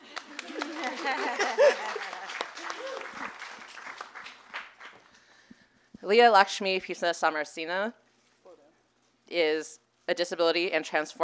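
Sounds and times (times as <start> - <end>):
laughter: 0.0 - 3.4
audience clapping: 0.0 - 5.4
speech: 6.1 - 8.0, 9.3 - 11.2.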